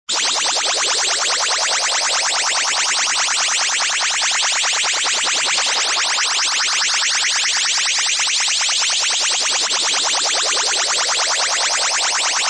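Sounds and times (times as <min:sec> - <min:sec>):
electronic moog synthesizer cartoon speedups: 0:00.1 - 0:12.4.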